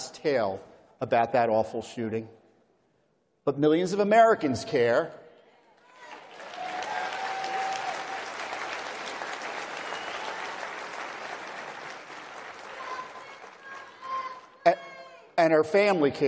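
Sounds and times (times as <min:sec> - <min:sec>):
speech: 0:00.2 - 0:02.4, 0:03.4 - 0:05.2, 0:14.6 - 0:14.8, 0:15.4 - 0:16.2
audience applause: 0:06.0 - 0:14.4.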